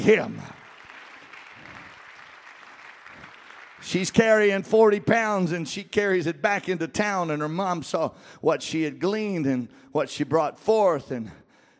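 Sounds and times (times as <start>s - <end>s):
speech: 0.0s - 0.6s, 3.8s - 11.4s
congregation clapping hands during a church service: 0.0s - 5.5s.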